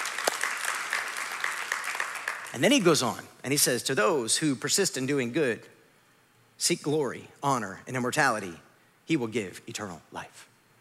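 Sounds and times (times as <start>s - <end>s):
applause: 0.0s - 2.8s
speech: 2.6s - 5.8s, 6.6s - 10.5s.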